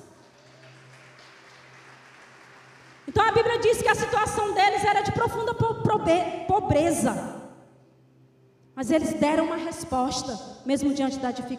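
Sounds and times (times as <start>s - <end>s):
audience applauding: 0.0s - 3.2s
speech: 3.1s - 7.4s, 8.8s - 11.5s.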